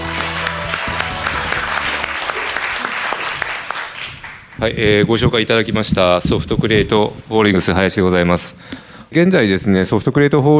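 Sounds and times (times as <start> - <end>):
audience applause: 0.0 - 4.8
speech: 4.6 - 10.5.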